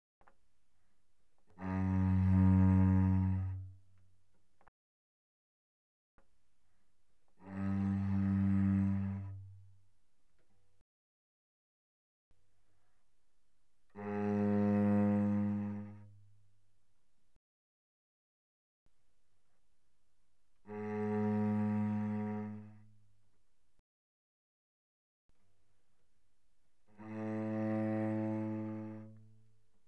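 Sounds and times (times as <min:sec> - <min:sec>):
cello played arco pianissimo on the C string: 0:01.4 - 0:04.7, 0:07.3 - 0:09.8, 0:13.9 - 0:16.3, 0:20.6 - 0:23.0, 0:26.8 - 0:29.6.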